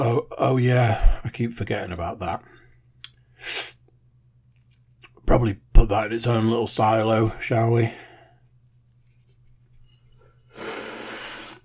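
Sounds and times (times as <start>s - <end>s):
speech: 0.0s - 2.5s, 5.3s - 8.1s
person slurping from a can: 10.6s - 11.6s.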